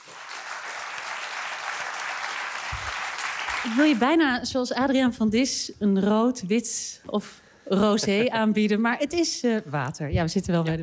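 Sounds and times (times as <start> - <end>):
audience applause: 0.0 - 4.0
speech: 3.6 - 10.8.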